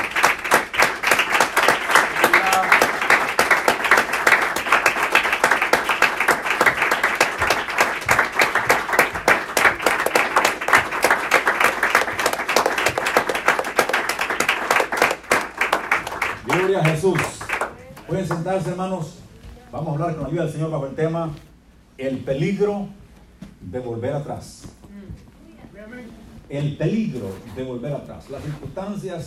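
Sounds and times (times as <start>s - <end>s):
audience applause: 0.0s - 18.5s
speech: 18.4s - 23.0s, 23.7s - 24.6s, 26.5s - 29.2s.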